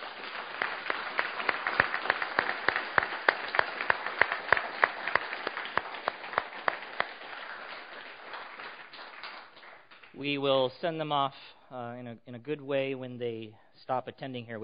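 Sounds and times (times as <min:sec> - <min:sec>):
crowd applauding warmly: 0:00.0 - 0:10.2
speech: 0:10.2 - 0:14.6.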